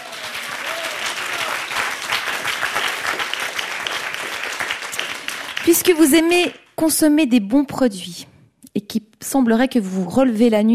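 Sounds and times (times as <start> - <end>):
audience applause: 0.0 - 6.5
speech: 5.7 - 8.3, 8.9 - 10.7.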